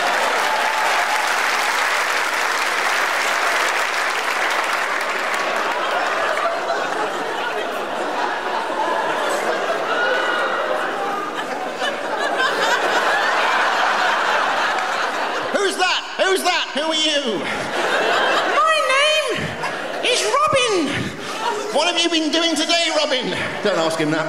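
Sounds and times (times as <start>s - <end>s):
audience applause: 0.0s - 21.8s
laughter: 4.2s - 24.2s
speech: 23.9s - 24.2s.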